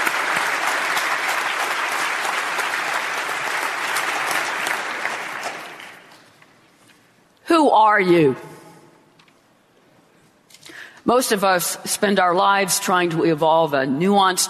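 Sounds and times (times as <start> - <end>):
audience applause: 0.0 - 6.2
speech: 7.7 - 8.5, 11.1 - 14.4.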